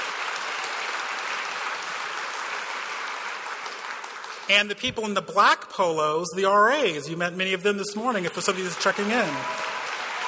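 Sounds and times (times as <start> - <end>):
crowd applauding: 0.0 - 4.9, 8.0 - 10.2
speech: 4.5 - 9.7.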